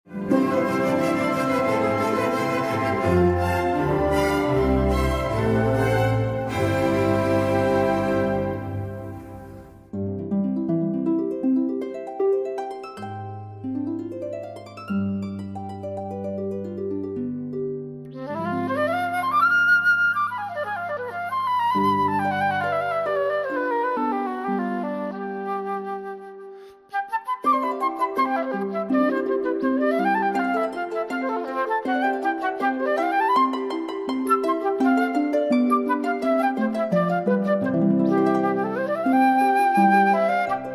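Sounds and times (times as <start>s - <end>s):
harp: 0.0s - 40.7s
flute playing cadenzas: 0.1s - 9.8s, 18.1s - 40.7s.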